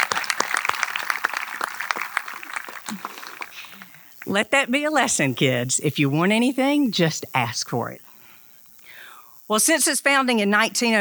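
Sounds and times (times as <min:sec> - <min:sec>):
audience applause: 0:00.0 - 0:04.4
laughter: 0:00.0 - 0:05.6
speech: 0:04.2 - 0:08.1, 0:09.5 - 0:11.0.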